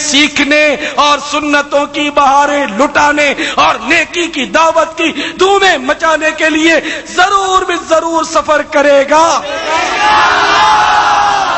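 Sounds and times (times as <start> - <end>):
speech: 0.1 - 11.1
crowd at an Islamic religious gathering chanting in unison: 9.4 - 11.5.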